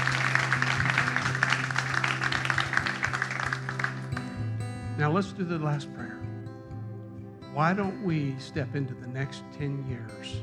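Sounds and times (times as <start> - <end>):
audience applause: 0.0 - 4.4
speech: 5.0 - 6.2, 7.6 - 10.4.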